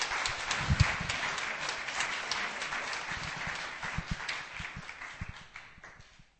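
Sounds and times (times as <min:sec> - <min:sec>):
audience applause: 0:00.0 - 0:06.2.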